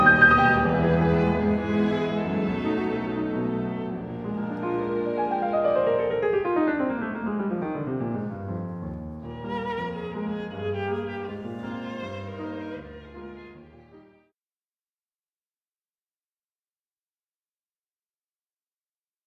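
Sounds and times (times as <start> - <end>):
piano: 0.0 - 14.3.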